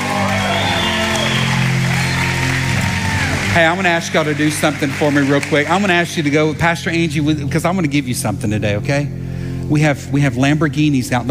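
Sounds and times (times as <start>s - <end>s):
crowd yelling: 0.0s - 5.1s
crowd applauding: 0.0s - 7.1s
speech: 3.6s - 11.2s.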